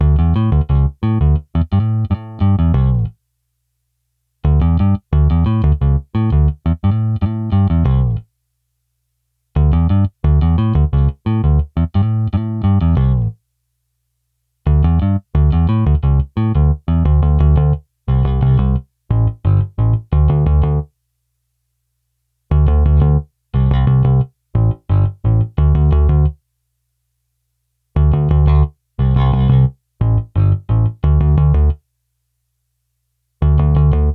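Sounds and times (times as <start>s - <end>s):
bass: 0.0s - 3.3s, 4.4s - 8.4s, 9.5s - 13.5s, 14.6s - 21.0s, 22.5s - 26.4s, 27.9s - 31.9s, 33.4s - 34.1s.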